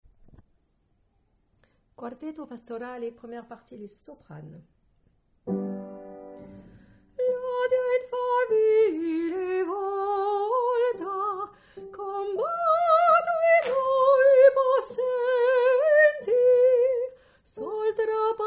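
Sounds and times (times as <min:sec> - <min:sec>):
soprano singing: 0:07.1 - 0:18.4.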